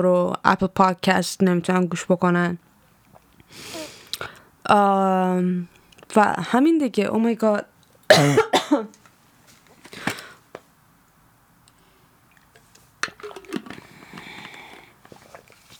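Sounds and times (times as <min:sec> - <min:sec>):
speech: 0:00.0 - 0:02.7, 0:03.5 - 0:09.0
coughing: 0:08.1 - 0:08.9.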